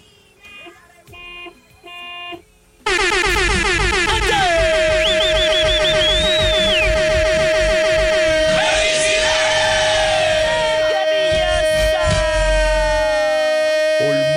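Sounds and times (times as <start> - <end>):
driver's car horn honking: 1.1 - 14.3
loud sustained din: 2.9 - 14.3
high whistling tone: 3.0 - 14.3.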